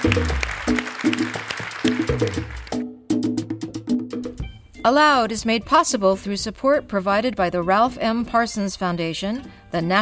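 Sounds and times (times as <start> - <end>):
audience applause: 0.0 - 2.8
speech: 4.8 - 10.0.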